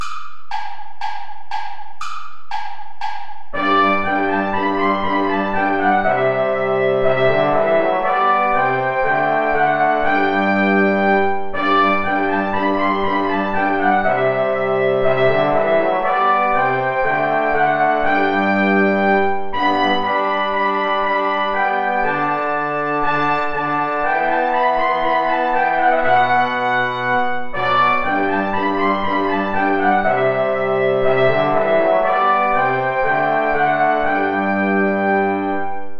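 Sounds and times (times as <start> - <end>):
play-along backing music without trumpet: 0.0 - 35.9.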